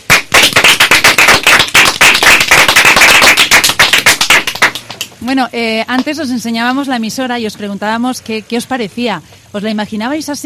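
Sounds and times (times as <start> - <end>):
group applause: 0.0 - 5.2
speech: 5.2 - 10.4.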